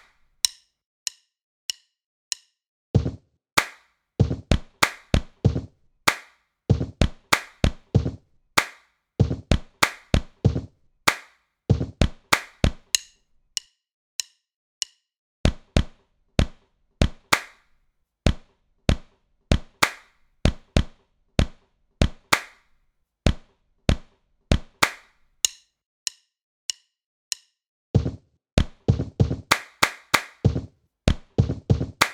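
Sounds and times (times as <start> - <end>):
body percussion: 3.0 - 13.2, 15.5 - 17.7, 18.3 - 22.7, 23.3 - 25.2, 28.0 - 32.1.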